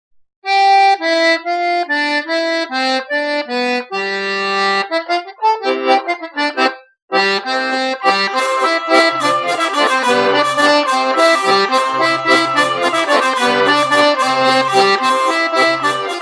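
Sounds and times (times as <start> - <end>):
bourree folk dance music from Auvergne France: 0.6 - 16.1.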